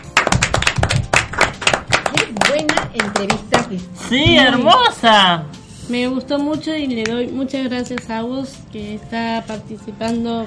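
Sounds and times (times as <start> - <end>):
hands clapping: 0.0 - 3.8
speech: 2.4 - 10.4.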